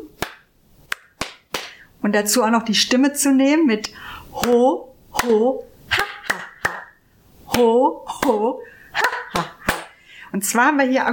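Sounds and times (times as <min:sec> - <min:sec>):
hands clapping palm to palm in laughter yoga: 0:00.2 - 0:01.8, 0:06.2 - 0:06.9, 0:09.3 - 0:10.0
speech: 0:02.0 - 0:06.0, 0:07.6 - 0:09.5, 0:10.3 - 0:11.1.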